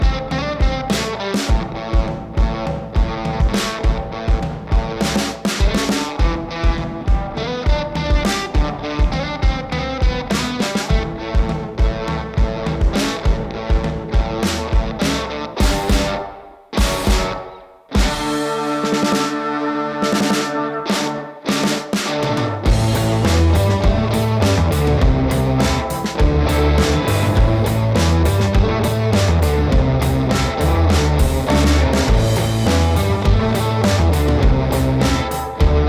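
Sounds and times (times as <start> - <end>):
blues rock music: 0.0 - 35.8.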